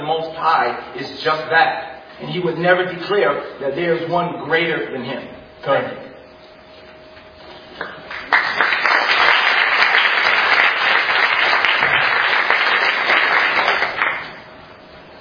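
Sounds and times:
speech: 0:00.0 - 0:06.1
audience applause: 0:08.1 - 0:14.4.

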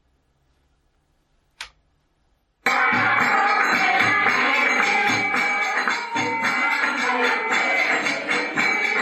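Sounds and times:
click: 0:01.6 - 0:01.8
bells ringing: 0:03.2 - 0:09.0.

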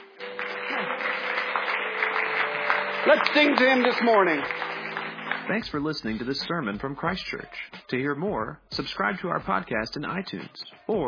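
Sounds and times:
audience clapping: 0:00.0 - 0:06.8
speech: 0:03.0 - 0:04.7, 0:05.5 - 0:11.0.

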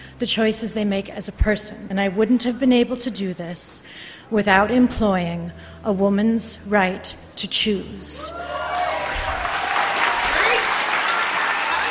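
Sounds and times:
speech: 0:00.2 - 0:08.6
audience applauding: 0:08.3 - 0:11.8.

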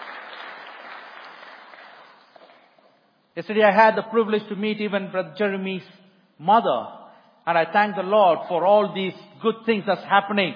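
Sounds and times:
audience clapping: 0:00.0 - 0:02.9
speech: 0:03.4 - 0:10.5.

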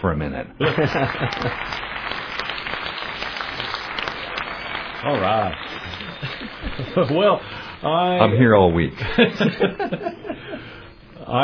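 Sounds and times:
speech: 0:00.0 - 0:01.9, 0:05.0 - 0:11.4
laughter: 0:00.6 - 0:01.8, 0:05.1 - 0:07.5, 0:09.0 - 0:10.8
applause sound effect: 0:00.6 - 0:07.4.

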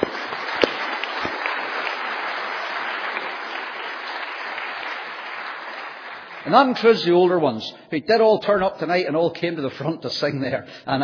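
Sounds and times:
audience applause: 0:00.0 - 0:07.0
speech: 0:06.5 - 0:11.0.

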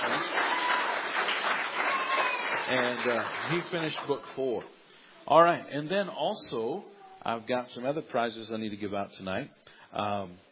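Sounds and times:
audience clapping for a child at a gathering: 0:00.0 - 0:04.7
speech: 0:02.7 - 0:10.4.

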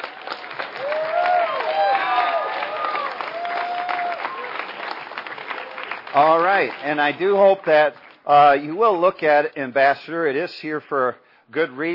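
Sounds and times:
audience clapping: 0:00.0 - 0:09.1
whistles and cheers from the crowd: 0:00.8 - 0:04.7
speech: 0:06.2 - 0:11.9.

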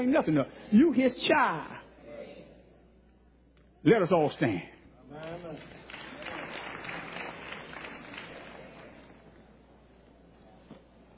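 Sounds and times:
speech: 0:00.0 - 0:01.8, 0:03.8 - 0:05.8
brief clapping from the audience: 0:05.2 - 0:09.2.

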